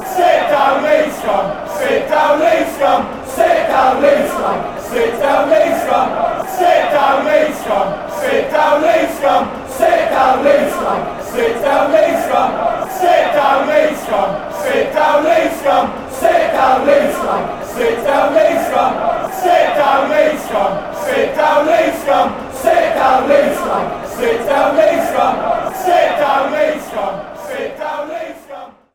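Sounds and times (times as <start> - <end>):
fans chanting: 0.0 - 28.9.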